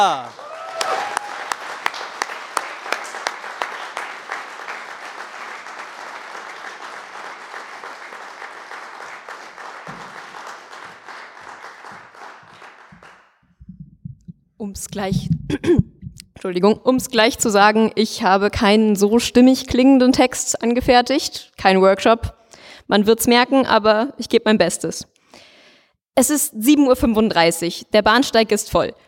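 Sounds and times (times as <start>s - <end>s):
speech: 0.0s - 0.5s, 14.6s - 25.1s, 26.2s - 29.0s
loud enthusiastic audience applause: 0.0s - 13.4s.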